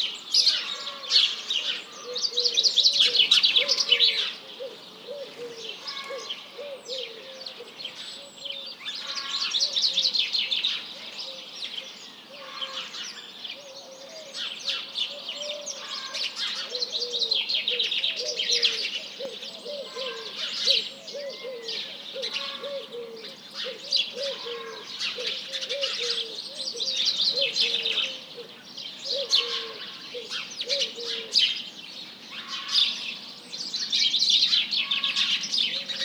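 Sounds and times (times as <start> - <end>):
birds: 0.0 - 36.0.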